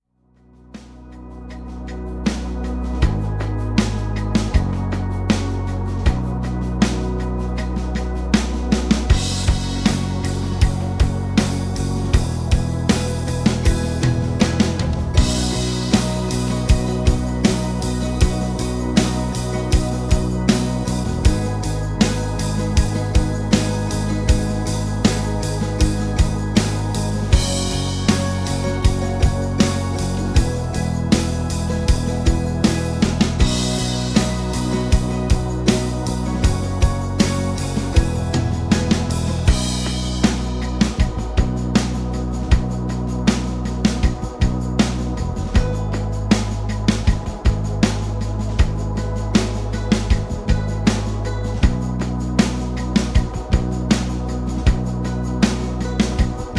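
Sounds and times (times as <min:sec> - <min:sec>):
rhythm: 0:00.7 - 0:56.5.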